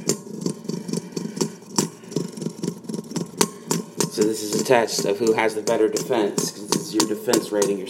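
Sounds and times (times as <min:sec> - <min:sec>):
spinning tops whirring in a bowl: 0:00.0 - 0:07.8
speech: 0:04.2 - 0:07.8.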